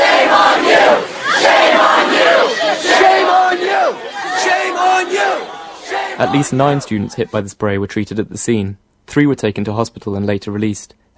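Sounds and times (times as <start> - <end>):
protest crowd chanting at campus sit-in: 0.0 - 7.3
speech: 6.2 - 11.0.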